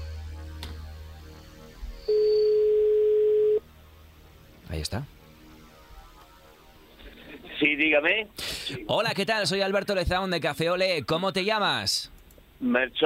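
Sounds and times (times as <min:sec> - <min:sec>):
telephone dialing tones: 0:02.1 - 0:03.6
speech: 0:04.9 - 0:05.2, 0:07.6 - 0:13.0.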